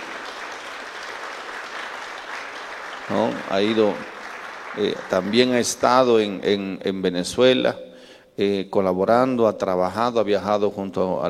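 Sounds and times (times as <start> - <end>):
applause for a church guest: 0.0 - 6.6
speech: 3.1 - 4.1, 4.8 - 7.8, 8.4 - 11.2.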